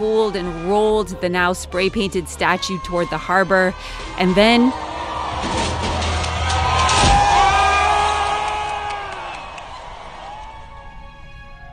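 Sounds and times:
speech: 0.0s - 5.6s
crowd of protesters cheering outdoors: 4.1s - 11.7s.

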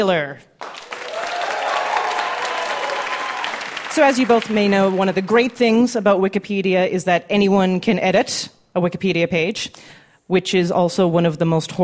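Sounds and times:
speech: 0.0s - 0.7s, 4.0s - 11.8s
audience applause at a live Wikipedia-themed comedy game show: 0.6s - 5.7s.

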